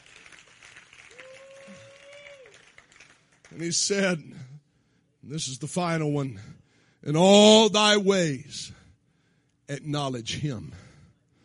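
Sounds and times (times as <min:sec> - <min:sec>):
audience clapping hands: 0:00.0 - 0:04.0
speech: 0:03.5 - 0:04.5, 0:05.3 - 0:08.8, 0:09.7 - 0:10.8.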